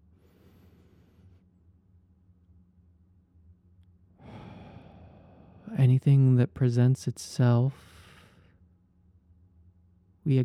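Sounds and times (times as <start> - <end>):
slow faint breathing: 0.1 - 1.5, 4.2 - 5.7, 7.8 - 8.6
speech: 5.7 - 7.9.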